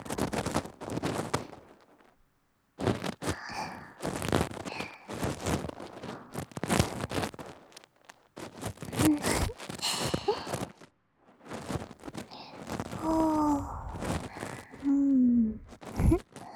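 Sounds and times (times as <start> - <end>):
ear cleaning in the right ear: 0.0 - 2.0, 2.8 - 10.8, 11.4 - 16.2.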